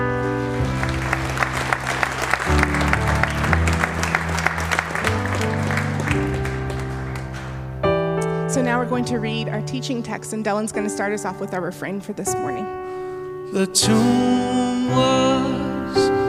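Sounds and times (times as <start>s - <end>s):
congregation applause in a church: 0.0s - 7.8s
sustained instrumental chords: 0.0s - 16.2s
speech: 8.9s - 12.8s, 13.5s - 15.7s.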